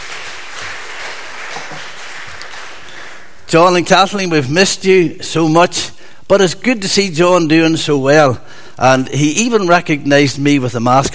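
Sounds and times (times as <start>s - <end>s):
round of applause: 0.0s - 3.5s
speech: 3.5s - 11.1s.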